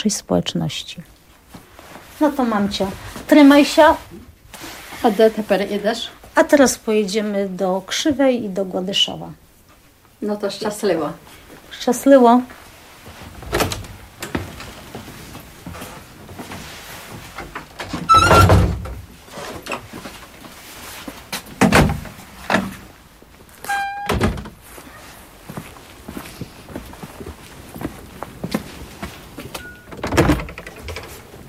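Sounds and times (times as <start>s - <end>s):
speech: 0.0s - 1.2s, 2.2s - 9.4s, 10.2s - 12.6s
sliding door opening and slamming shut: 13.3s - 14.7s, 17.3s - 19.8s, 21.6s - 22.8s, 23.6s - 24.6s, 29.8s - 31.4s
metallic squeak: 18.1s - 18.6s, 23.6s - 24.3s.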